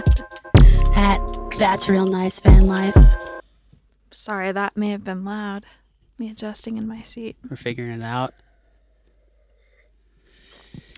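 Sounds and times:
speech: 0:01.6 - 0:03.4, 0:04.1 - 0:08.4
person sniffling into a microphone: 0:10.2 - 0:10.9.

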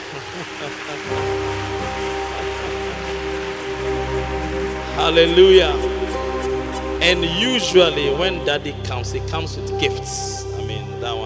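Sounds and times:
audience clapping: 0:00.0 - 0:08.0
sustained musical tones: 0:00.0 - 0:11.2
speech: 0:00.2 - 0:02.0, 0:04.3 - 0:05.9, 0:07.0 - 0:11.2.

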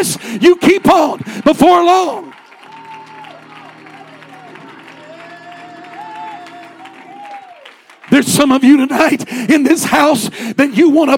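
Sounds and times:
speech: 0:00.0 - 0:02.4, 0:08.1 - 0:11.1
audience clapping hands: 0:00.0 - 0:09.7
sustained musical tones: 0:02.5 - 0:08.0.

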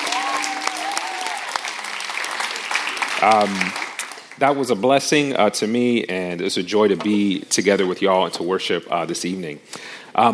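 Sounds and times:
church audience applauding the worship team after an evening service: 0:00.0 - 0:04.4
speech: 0:03.2 - 0:03.8, 0:04.4 - 0:10.3.

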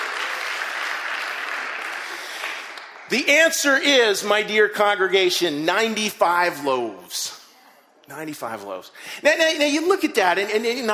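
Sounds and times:
crowd applauding: 0:00.0 - 0:03.4
speech: 0:03.1 - 0:07.4, 0:08.1 - 0:10.9.

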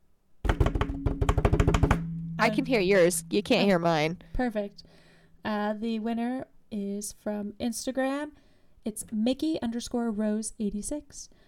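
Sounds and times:
hand-tapped drum roll on a hard surface: 0:00.5 - 0:04.7
speech: 0:02.4 - 0:11.4.

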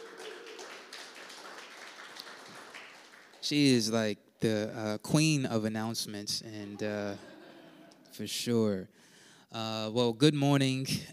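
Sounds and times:
audience applause: 0:00.0 - 0:03.6
speech: 0:03.5 - 0:07.3, 0:08.2 - 0:11.1.

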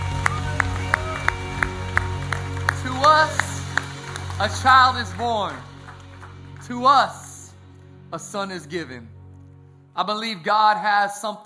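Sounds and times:
audience clapping and cheering: 0:00.0 - 0:07.7
speech: 0:04.4 - 0:05.7, 0:06.7 - 0:07.2, 0:08.1 - 0:09.1, 0:10.0 - 0:11.4.

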